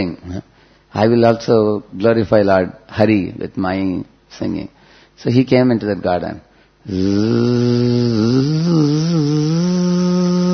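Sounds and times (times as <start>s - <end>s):
speech: 0.0s - 10.5s
voice imitating a bumblebee buzzing: 6.9s - 10.5s.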